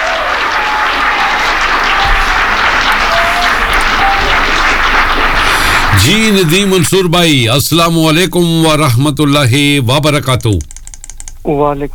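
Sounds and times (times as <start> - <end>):
applause welcoming a guest: 0.0 - 7.5
speech: 6.0 - 10.7, 11.4 - 11.9.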